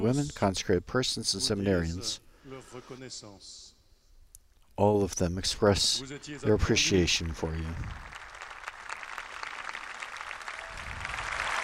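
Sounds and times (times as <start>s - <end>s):
speech: 0.0s - 3.7s, 4.8s - 8.1s
round of applause: 6.8s - 11.6s.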